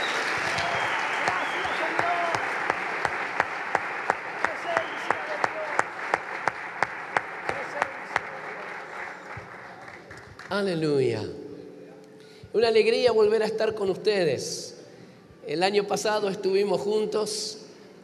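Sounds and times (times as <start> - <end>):
audience applause: 0.0 - 10.5
speech: 10.6 - 11.4, 12.6 - 14.7, 15.5 - 18.0.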